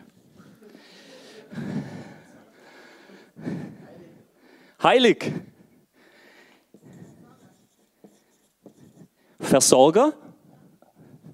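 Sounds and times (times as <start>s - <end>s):
speech: 4.8s - 5.5s, 9.5s - 10.2s
pen scratching on paper: 6.8s - 9.2s.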